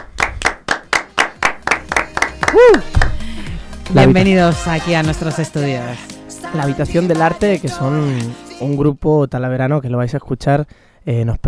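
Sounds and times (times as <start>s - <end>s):
people clapping in a radio studio: 0.0s - 5.6s
person whooping: 1.8s - 4.7s
speech: 2.6s - 3.0s, 3.9s - 11.4s.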